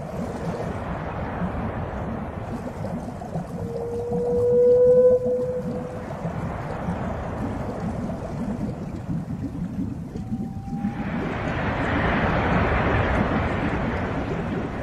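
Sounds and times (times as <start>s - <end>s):
steady low rumble: 0.1s - 14.8s
whale calls in the deep sea: 2.6s - 8.5s, 9.9s - 12.0s.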